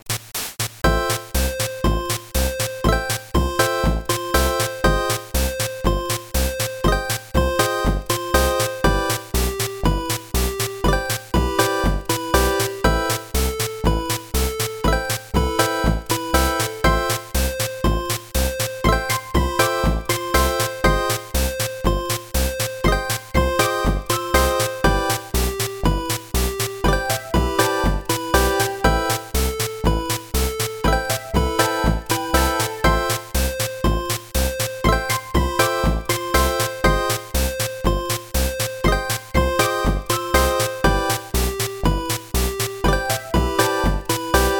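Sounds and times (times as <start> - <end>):
arcade game music: 0.8 - 44.5.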